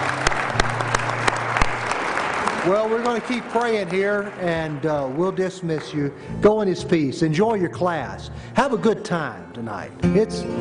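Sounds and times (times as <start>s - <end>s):
audience applause: 0.0s - 6.2s
speech: 2.6s - 10.6s.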